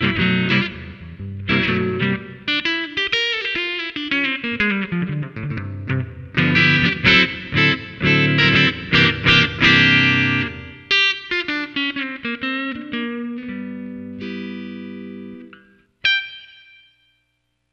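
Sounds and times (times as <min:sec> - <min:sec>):
blues played on HOAG LB: 0:00.0 - 0:17.0.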